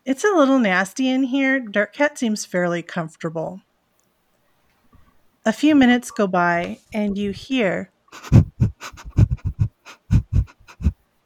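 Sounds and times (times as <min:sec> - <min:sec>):
speech: 0:00.1 - 0:03.7, 0:05.4 - 0:09.0
dog sniffing along a trail: 0:08.2 - 0:10.9.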